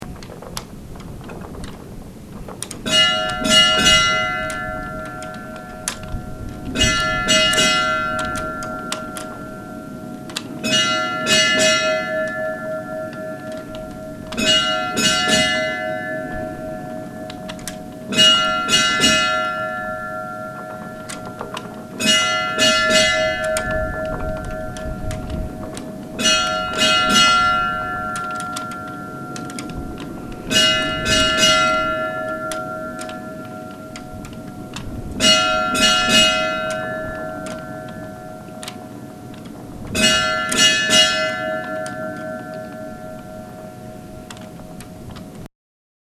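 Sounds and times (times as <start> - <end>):
church bells of Stadarholskirkja ringing: 2.7 - 45.5.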